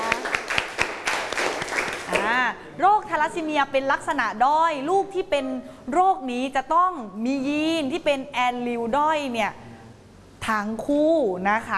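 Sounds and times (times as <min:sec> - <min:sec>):
students clapping in a Thai science classroom: 0:00.0 - 0:02.4
speech: 0:02.8 - 0:09.6, 0:10.5 - 0:11.7.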